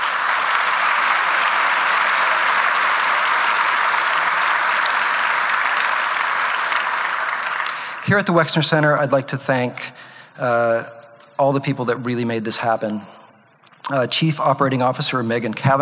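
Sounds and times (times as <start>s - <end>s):
audience applause: 0.0s - 8.3s
speech: 8.1s - 13.2s, 13.9s - 15.8s.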